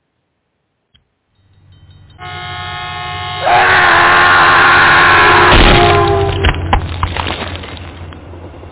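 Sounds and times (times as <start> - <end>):
train horn blaring: 2.1 - 6.7
train rumble and clatter: 5.2 - 8.7.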